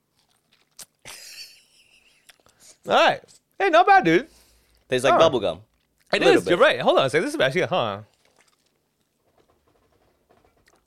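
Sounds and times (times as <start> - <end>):
teeth biting into a soft custardy fruit: 0.1 - 1.0, 8.1 - 8.8
speech: 2.8 - 4.3, 4.9 - 8.1.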